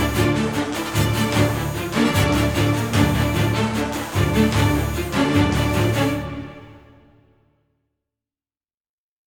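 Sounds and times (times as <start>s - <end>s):
boss fight music: 0.0s - 6.8s.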